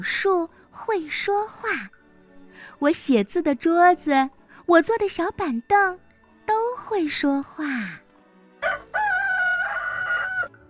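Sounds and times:
speech: 0.0s - 2.0s, 2.6s - 8.0s
rooster crowing at dawn: 8.6s - 10.6s.

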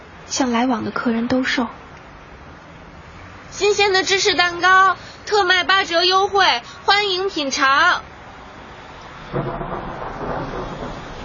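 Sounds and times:
speech: 0.4s - 1.8s, 3.6s - 8.1s, 9.3s - 9.7s
low rolling thunder: 9.1s - 11.2s.

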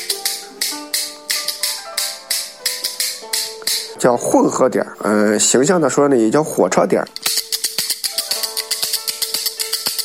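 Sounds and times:
bamboo clappers clacking: 0.0s - 4.4s, 7.0s - 10.0s
speech: 4.0s - 7.3s.

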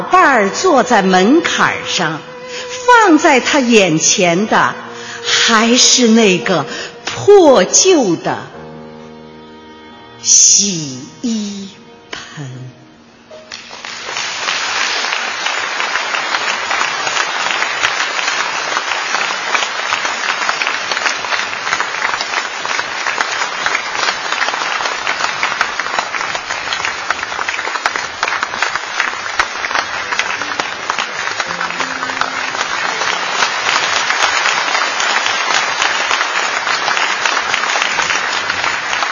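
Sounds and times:
speech: 0.0s - 8.5s, 10.3s - 11.8s
long sustained applause from audience: 13.5s - 39.1s.

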